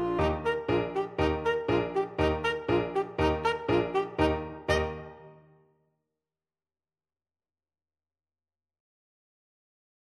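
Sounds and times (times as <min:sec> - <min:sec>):
tenor saxophone: 0:00.0 - 0:05.4.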